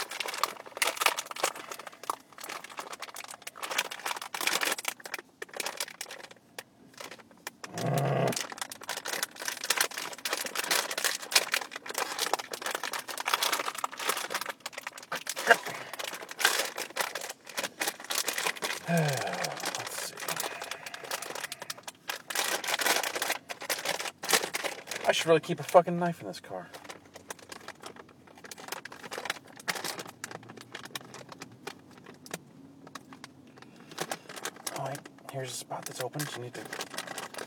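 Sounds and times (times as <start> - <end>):
crinkly plastic bag being torn open: 0.0 - 37.4
speech: 25.2 - 26.8, 35.4 - 36.9.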